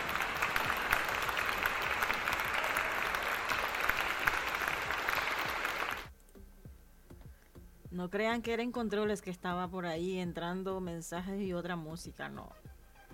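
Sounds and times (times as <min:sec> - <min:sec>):
applause sound effect: 0:00.0 - 0:06.1
speech: 0:08.0 - 0:12.6.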